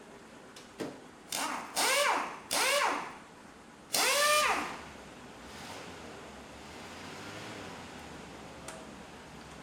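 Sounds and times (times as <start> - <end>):
repair sounds: 1.3 - 3.2, 3.9 - 4.8.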